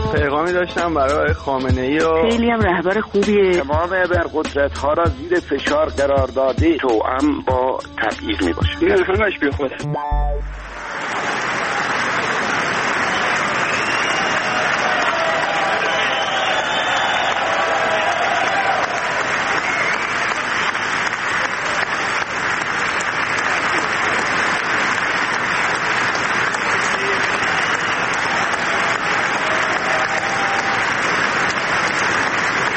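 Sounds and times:
speech: 0.1s - 10.7s
audience applause before President Trump's speech: 10.5s - 32.7s.

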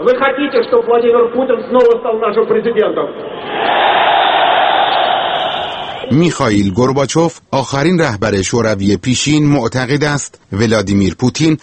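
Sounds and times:
speech: 0.0s - 3.9s, 6.1s - 11.6s
crowd shouting in unison: 3.3s - 6.1s.

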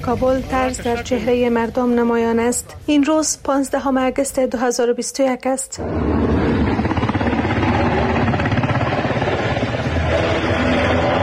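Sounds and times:
speech: 0.0s - 6.3s
helicopter rotor drone: 5.8s - 11.2s.

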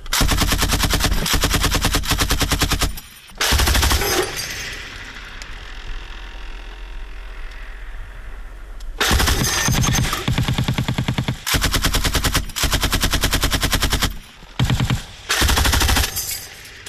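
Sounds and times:
machine gun fire at front-line position: 0.1s - 5.3s, 9.0s - 16.8s.

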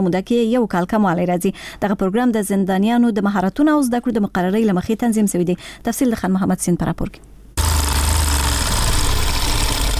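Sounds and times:
speech: 0.0s - 7.3s
sewing machine in a tailoring workshop inside a Kabul prison: 7.6s - 9.9s.

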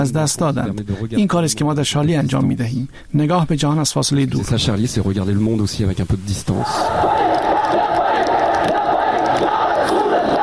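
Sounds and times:
speech: 0.0s - 8.0s
thousands of angry protesters in Pakistan chanting slogans: 6.6s - 10.4s.

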